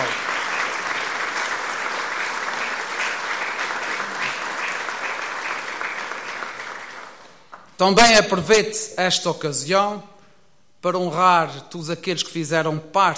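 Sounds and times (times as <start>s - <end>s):
crowd warm round of applause: 0.0s - 7.7s
speech: 7.8s - 10.1s, 10.8s - 13.1s.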